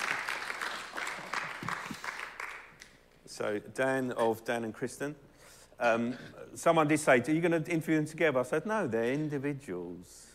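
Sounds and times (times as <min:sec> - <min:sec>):
audience applause: 0:00.0 - 0:02.8
speech: 0:03.4 - 0:10.3.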